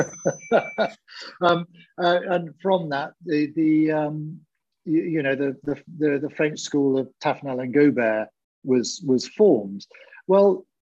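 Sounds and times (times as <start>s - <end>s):
300-year-old antique clock chiming: 0.0s - 1.0s
speech: 0.0s - 10.7s.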